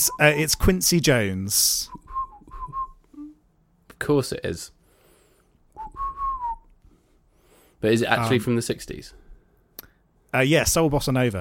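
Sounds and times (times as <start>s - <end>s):
speech: 0.0s - 2.0s, 4.0s - 4.8s, 7.8s - 9.2s, 10.3s - 11.3s
person whistling a tune: 1.9s - 3.4s, 5.8s - 6.8s.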